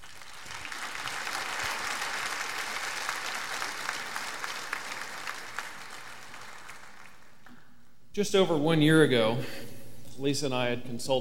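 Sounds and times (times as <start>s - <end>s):
audience applause welcoming a couple: 0.0s - 7.4s
speech: 8.2s - 11.2s.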